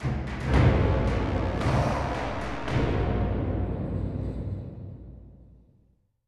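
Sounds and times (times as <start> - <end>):
viking fight music ending: 0.0 - 4.3.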